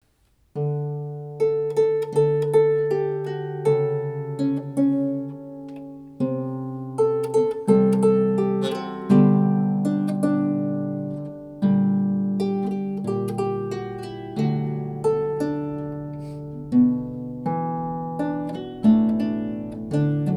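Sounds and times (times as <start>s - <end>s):
harp: 0.5s - 20.3s.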